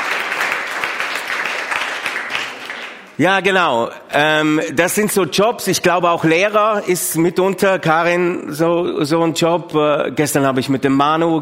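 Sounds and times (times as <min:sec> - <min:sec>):
audience applause for nurses and doctors: 0:00.0 - 0:03.2
speech: 0:03.2 - 0:11.4.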